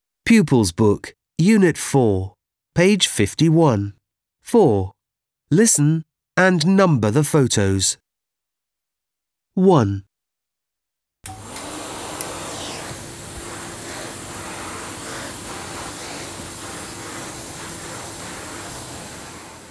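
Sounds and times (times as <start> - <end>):
speech: 0.3 - 8.0, 9.6 - 10.1
floor-cleaning machine droning: 11.3 - 19.6.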